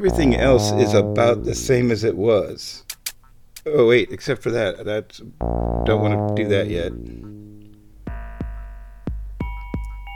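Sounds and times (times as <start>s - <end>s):
speech: 0.0s - 2.9s, 3.6s - 7.4s
kick drum thumps: 8.0s - 10.0s.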